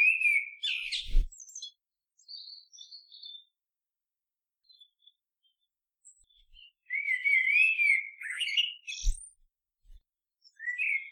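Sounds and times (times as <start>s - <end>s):
bird song of clear whistled slurred notes and high chirps: 0.0s - 3.5s, 6.2s - 9.4s, 10.4s - 11.0s.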